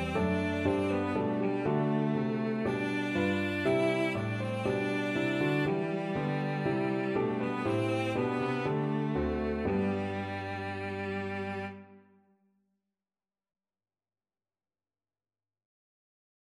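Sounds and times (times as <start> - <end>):
violoncello: 0.0 - 12.2.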